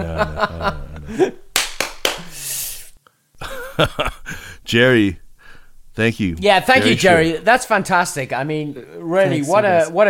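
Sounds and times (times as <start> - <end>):
laughter: 0.0 - 1.4, 3.4 - 4.4
speech: 0.0 - 1.4, 3.8 - 5.2, 6.0 - 10.0
hands clapping: 1.5 - 2.4.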